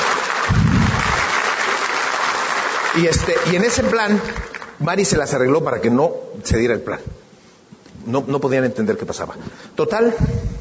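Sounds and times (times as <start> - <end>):
audience applause: 0.0 - 4.8
speech: 3.0 - 7.2, 8.0 - 10.5.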